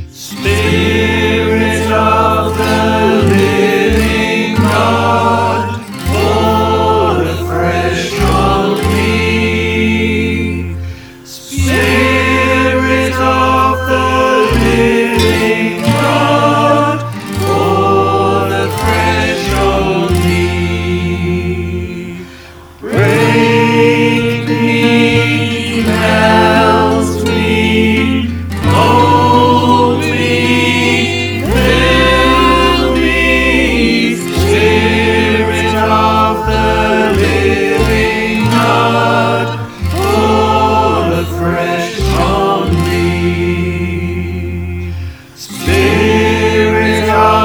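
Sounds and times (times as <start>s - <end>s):
choir singing: 0.1s - 47.4s.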